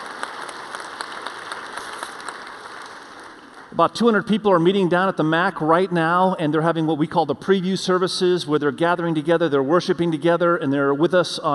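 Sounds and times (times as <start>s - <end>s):
audience applause: 0.0s - 3.7s
speech: 3.8s - 11.5s.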